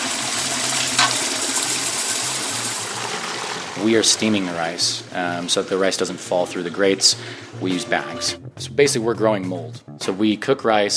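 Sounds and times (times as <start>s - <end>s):
rice washing machine churning water: 0.0s - 7.5s
speech: 3.8s - 10.9s.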